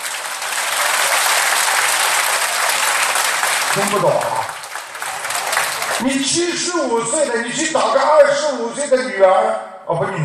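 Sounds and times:
audience applause: 0.0 - 6.7
speech: 3.8 - 4.5, 6.0 - 10.2.

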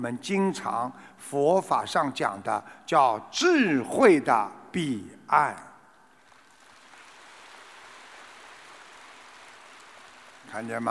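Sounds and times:
speech: 0.0 - 5.7, 10.5 - 10.8
faint applause from audience: 6.2 - 10.8.

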